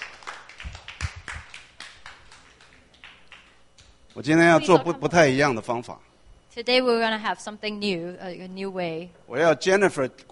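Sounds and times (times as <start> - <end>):
scattered applause from a small crowd: 0.0 - 4.2
speech: 4.2 - 10.3.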